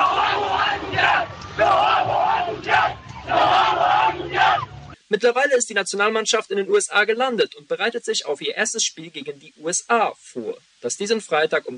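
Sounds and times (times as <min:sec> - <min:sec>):
crowd of football fans cheering and chanting: 0:00.0 - 0:05.0
speech: 0:05.1 - 0:11.7.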